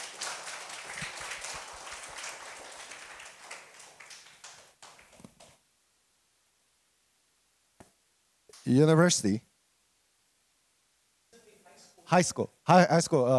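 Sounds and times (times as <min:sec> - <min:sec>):
crowd applauding: 0:00.0 - 0:05.6
speech: 0:08.7 - 0:09.5, 0:12.1 - 0:13.3.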